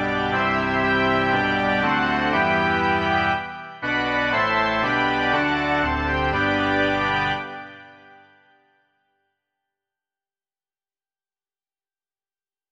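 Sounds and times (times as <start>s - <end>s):
organ: 0.0s - 8.7s.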